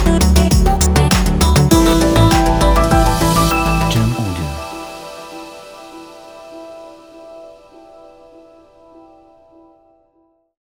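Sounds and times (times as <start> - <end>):
inspiring hi-tech electronic dance music: 0.0 - 6.9.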